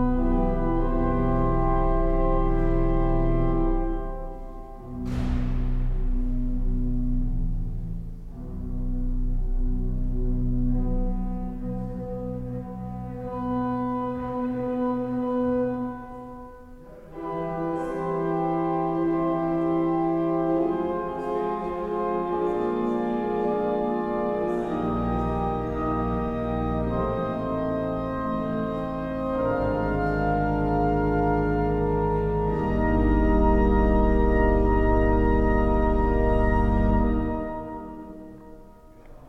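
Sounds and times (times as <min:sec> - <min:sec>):
church organ: 0:00.0 - 0:39.2.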